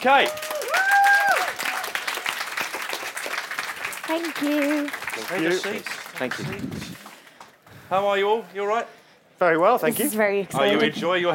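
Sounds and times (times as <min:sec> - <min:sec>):
speech: 0:00.0 - 0:00.5, 0:04.1 - 0:07.0, 0:07.9 - 0:11.3
crowd applauding: 0:00.0 - 0:07.6.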